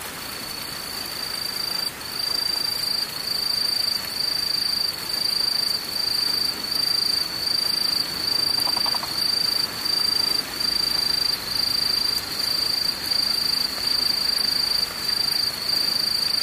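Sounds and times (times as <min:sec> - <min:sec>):
insect chorus: 0:00.1 - 0:16.4.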